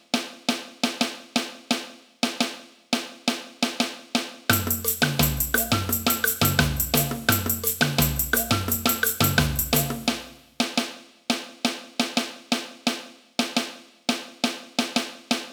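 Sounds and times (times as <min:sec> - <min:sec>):
caixa snare drum: 0:00.0 - 0:15.5
samba music: 0:04.5 - 0:10.4.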